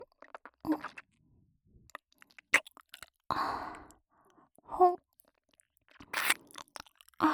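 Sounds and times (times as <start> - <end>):
ear licking on the right ear: 0.3 - 1.1, 1.9 - 3.2, 5.9 - 7.2.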